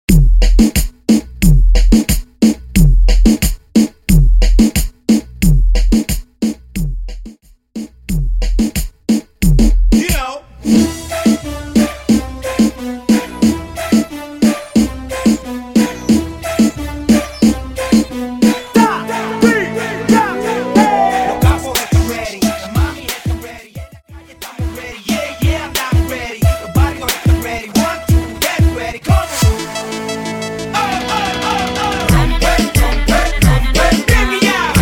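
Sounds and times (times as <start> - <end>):
90 bpm a cappella percussion beat: 0.1 - 29.6, 31.4 - 34.7.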